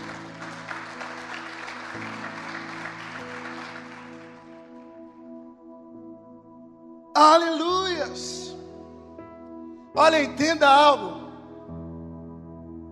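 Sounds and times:
crowd clapping: 0.0 - 5.0
sustained keyboard or organ chord: 0.0 - 12.9
speech: 10.0 - 11.2.

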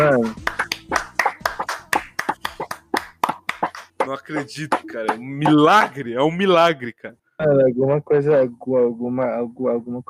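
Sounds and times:
hand clapping: 0.0 - 6.0
speech: 4.1 - 10.0.

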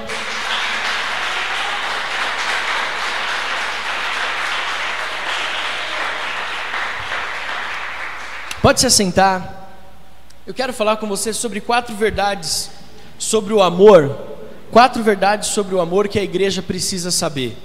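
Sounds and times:
audience applause: 0.0 - 8.6
speech: 8.7 - 9.6, 10.5 - 17.6.

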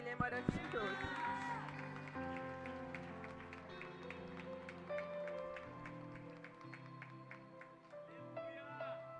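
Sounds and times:
sustained keyboard-like music: 0.0 - 9.1
speech: 0.1 - 1.5
audience clapping rhythmically: 0.2 - 8.4.

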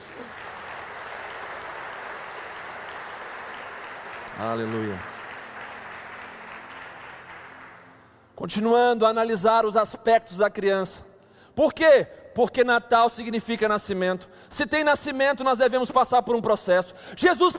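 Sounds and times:
audience applauding: 0.0 - 8.2
speech: 4.4 - 5.1, 8.4 - 17.5.

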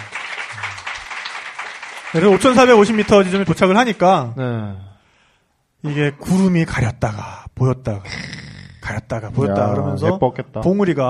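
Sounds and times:
audience applause: 0.0 - 4.0
speech: 2.1 - 4.9, 5.8 - 11.0.

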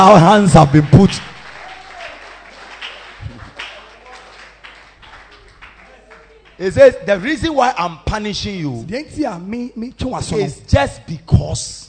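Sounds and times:
speech: 0.0 - 1.3, 6.6 - 11.8
audience clapping: 0.0 - 7.7.

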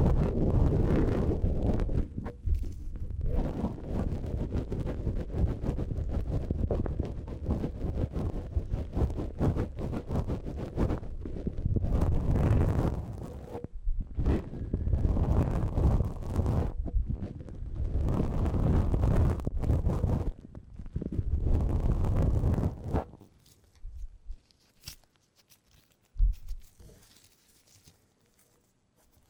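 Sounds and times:
tip brush swishing over a microphone: 0.1 - 29.2
light touches: 23.0 - 29.2.

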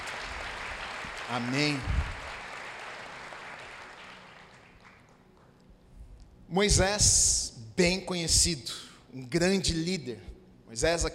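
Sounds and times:
audience applause: 0.0 - 5.5
speech: 1.3 - 2.1, 6.5 - 11.1.

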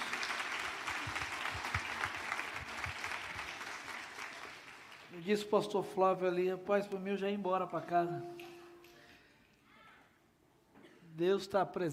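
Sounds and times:
audience applause: 0.0 - 5.1
speech: 5.2 - 8.4, 11.2 - 11.9.

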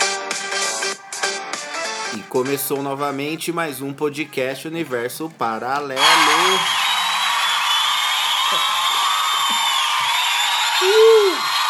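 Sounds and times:
speech: 2.3 - 6.8
audience cheering and clapping: 6.0 - 11.6
high whistles: 6.0 - 11.6
people shouting: 6.0 - 11.6.

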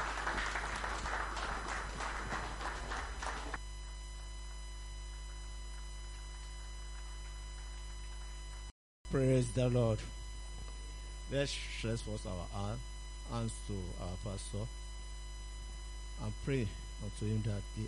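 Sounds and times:
audience clapping: 0.0 - 3.6
faint low hum: 0.0 - 17.8
speech: 9.1 - 10.2, 11.3 - 14.9, 16.2 - 17.8.

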